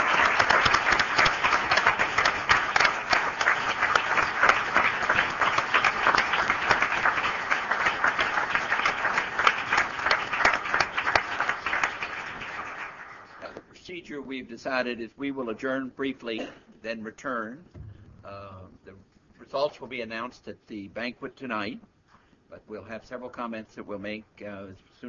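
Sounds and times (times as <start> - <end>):
audience applause: 0.0 - 13.5
speech: 14.5 - 21.9, 22.5 - 25.0.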